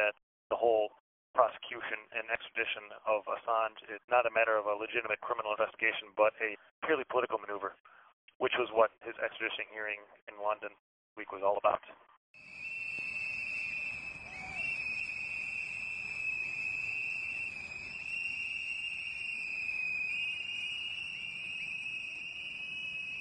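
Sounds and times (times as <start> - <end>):
speech: 0.0 - 12.6
protesters blowing whistles outside Alexandria Detention Center: 12.4 - 23.1.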